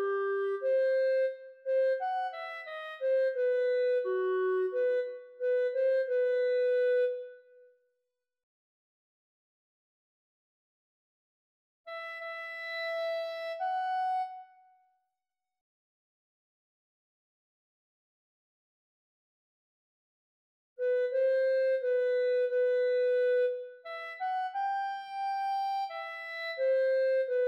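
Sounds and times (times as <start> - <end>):
clarinet: 0.0 - 7.8, 11.9 - 15.0, 20.8 - 27.4.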